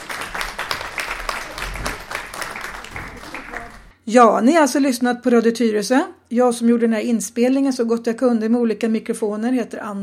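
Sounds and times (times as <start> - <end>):
audience applause for a panel: 0.0 - 3.9
speech: 4.1 - 10.0.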